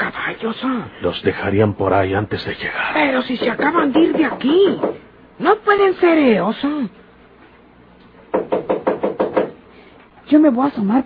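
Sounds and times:
speech: 0.4s - 7.0s, 10.3s - 11.0s
firm knocking on a door: 3.2s - 5.1s, 8.3s - 9.6s.

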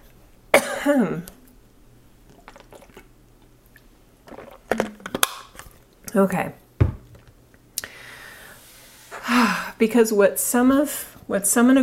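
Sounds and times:
speech: 0.8s - 1.4s, 6.2s - 6.6s, 9.3s - 11.8s
person drinking water: 2.2s - 6.0s.

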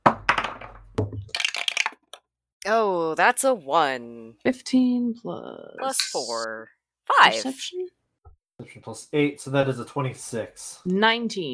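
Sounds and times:
dice being rolled: 1.4s - 2.1s
speech: 2.6s - 8.0s, 8.6s - 11.5s.

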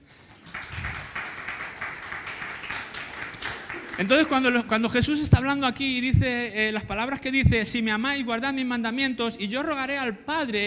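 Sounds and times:
audience applause: 0.0s - 4.7s
speech: 4.0s - 10.6s.

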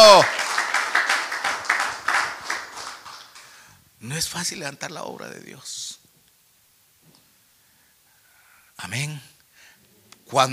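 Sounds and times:
audience clapping: 0.0s - 3.7s
speech: 4.0s - 6.0s, 8.8s - 9.3s, 10.3s - 10.5s.

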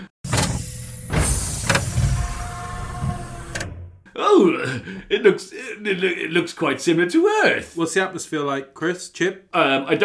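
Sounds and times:
motorized spacecraft door sliding open with a whir: 0.3s - 4.0s
speech: 4.3s - 10.0s.

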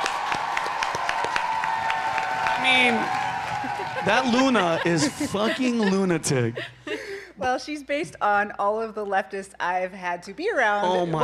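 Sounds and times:
applause: 0.0s - 5.3s
laughter: 3.6s - 7.6s
speech: 4.0s - 6.8s, 7.4s - 11.2s.

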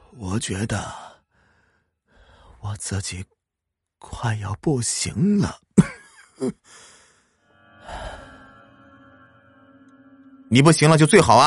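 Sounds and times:
speech: 0.1s - 1.0s, 2.6s - 3.4s, 4.0s - 7.0s, 10.5s - 11.4s
old man coughing: 5.8s - 6.6s.

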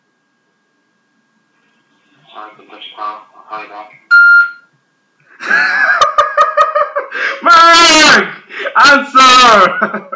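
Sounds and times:
speech: 2.4s - 4.0s, 5.5s - 6.0s, 7.4s - 10.1s
short electronic beep tone: 4.1s - 4.7s.

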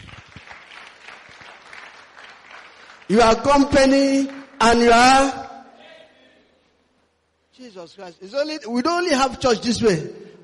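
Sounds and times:
audience clapping hands: 0.0s - 5.1s
speech: 3.1s - 5.4s, 7.6s - 10.2s.

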